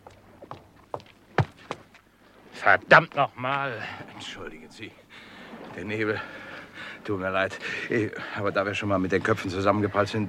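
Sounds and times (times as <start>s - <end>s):
quick footsteps approaching: 0.0s - 2.1s
speech: 2.6s - 5.0s, 5.8s - 6.4s, 7.0s - 10.2s.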